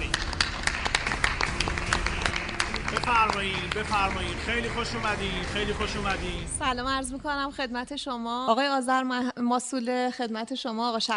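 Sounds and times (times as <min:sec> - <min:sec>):
audience applause welcoming guest: 0:00.0 - 0:06.4
speech: 0:03.2 - 0:11.1.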